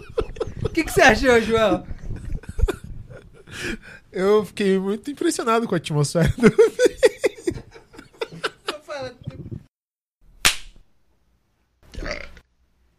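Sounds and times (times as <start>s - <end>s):
laughter: 0.0s - 3.5s, 6.2s - 9.6s
speech: 0.7s - 1.9s, 3.5s - 7.0s
clapperboard clap: 10.4s - 10.8s
long gurgling burp: 11.9s - 12.4s.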